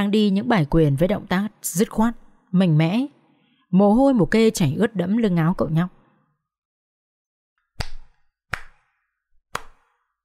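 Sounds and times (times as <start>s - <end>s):
speech: 0.0s - 6.0s
approving hand clapping: 7.7s - 8.9s, 9.5s - 10.0s.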